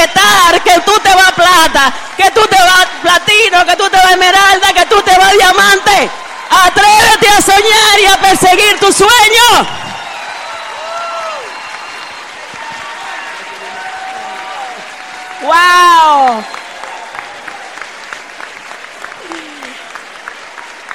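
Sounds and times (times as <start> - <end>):
audience applause: 0.2 - 8.7, 9.6 - 20.9
speech: 1.8 - 3.2
person crying out loudly: 19.2 - 19.8.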